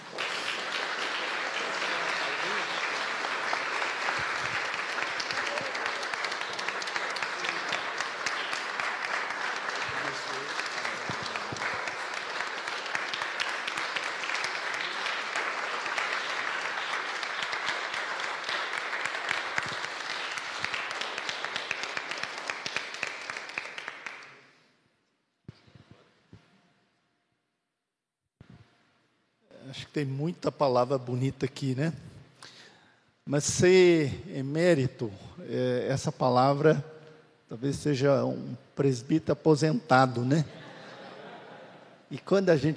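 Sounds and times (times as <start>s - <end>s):
audience applauding: 0.0s - 24.5s
speech: 30.0s - 32.1s, 33.3s - 36.9s, 37.6s - 40.6s, 42.2s - 42.7s
laughter: 40.4s - 42.2s.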